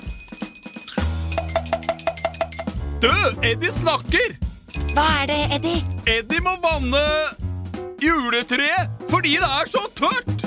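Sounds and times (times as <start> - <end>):
small bell ringing like a cowbell: 0.0 - 2.8, 4.6 - 6.2
speech: 3.0 - 4.4, 5.0 - 7.4, 8.0 - 10.3.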